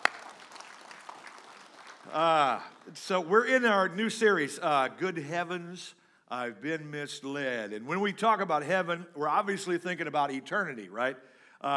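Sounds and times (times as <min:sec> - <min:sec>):
church congregation applauding: 0:00.0 - 0:03.8
speech: 0:02.1 - 0:11.7.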